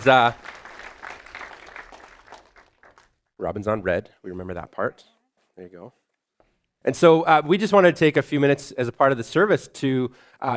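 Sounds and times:
speech: 0:00.0 - 0:00.5, 0:03.4 - 0:06.0, 0:06.8 - 0:10.5
church congregation applauding: 0:00.0 - 0:03.2.

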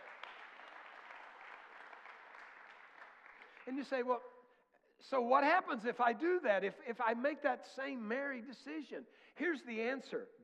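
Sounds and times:
audience hand clapping: 0:00.0 - 0:04.1
speech: 0:03.7 - 0:04.3, 0:05.0 - 0:10.4.

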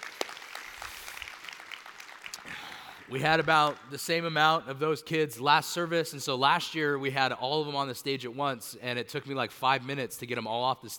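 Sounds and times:
audience applause: 0:00.0 - 0:03.9
speech: 0:03.1 - 0:10.9.

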